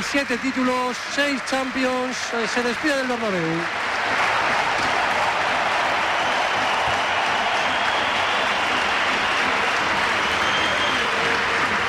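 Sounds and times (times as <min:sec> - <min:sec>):
stadium crowd applauding departing player: 0:00.0 - 0:11.8
speech: 0:00.1 - 0:04.3.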